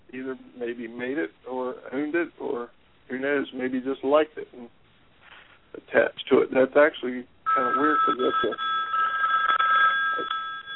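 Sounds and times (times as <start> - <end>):
speech: 0.1 - 4.8, 5.7 - 8.8
mobile phone ringing: 7.5 - 10.7.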